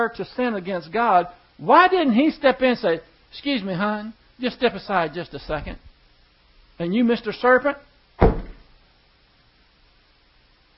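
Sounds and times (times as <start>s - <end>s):
speech: 0.0s - 5.8s, 6.8s - 8.4s
foot stomping on the ground: 8.2s - 8.7s.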